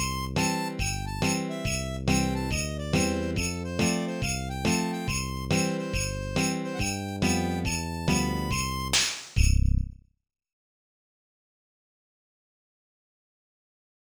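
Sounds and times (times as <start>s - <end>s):
Christmas song: 0.0s - 9.6s.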